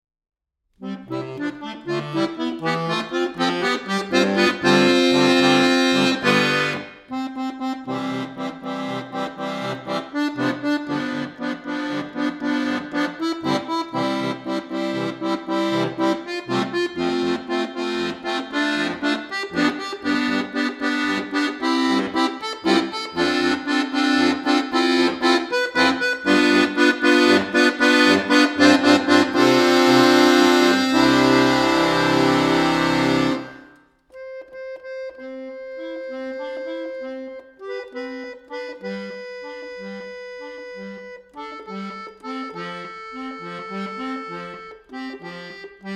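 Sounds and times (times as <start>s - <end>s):
instrumental music: 0.8s - 45.9s.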